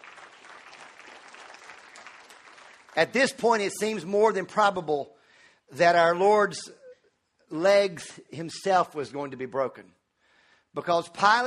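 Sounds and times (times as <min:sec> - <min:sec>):
audience applause during a religious talk: 0:00.0 - 0:03.4
speech: 0:03.0 - 0:06.8, 0:07.5 - 0:10.0, 0:10.7 - 0:11.4.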